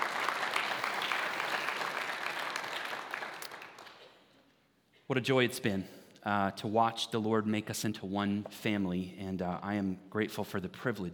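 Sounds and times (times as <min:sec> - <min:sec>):
audience clapping: 0:00.0 - 0:04.2
speech: 0:05.1 - 0:11.1.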